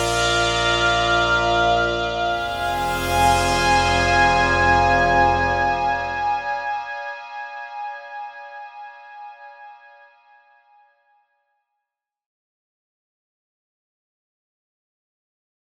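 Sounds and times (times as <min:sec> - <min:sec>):
analog synth pad: 0:00.0 - 0:06.8.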